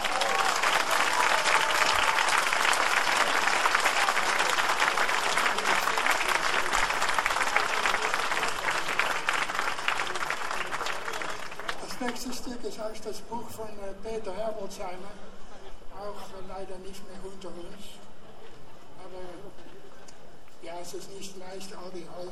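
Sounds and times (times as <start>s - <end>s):
audience applause: 0.0s - 12.3s
speech: 12.6s - 15.3s, 16.0s - 18.0s, 20.7s - 22.3s.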